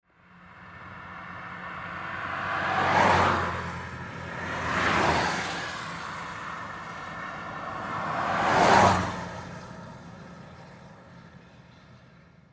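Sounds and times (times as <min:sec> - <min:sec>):
car driving by: 0:00.3 - 0:10.0.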